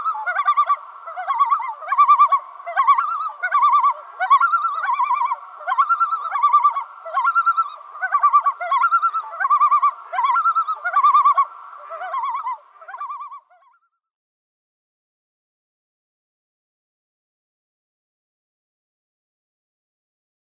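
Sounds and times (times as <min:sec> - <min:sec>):
great northern diver tremolo call: 0:00.0 - 0:13.8.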